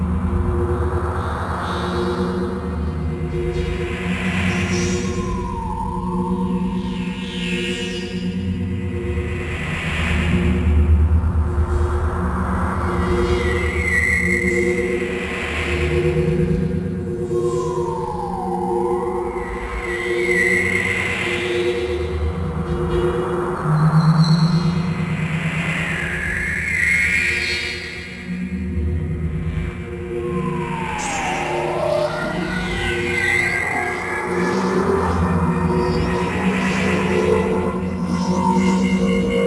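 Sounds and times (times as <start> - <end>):
dreamy atmospheric sound: 0.0 - 39.4.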